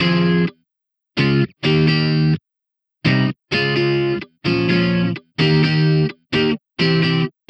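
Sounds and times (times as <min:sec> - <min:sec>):
electric pop guitar in F minor: 0:00.0 - 0:00.6, 0:01.2 - 0:02.4, 0:03.0 - 0:07.4.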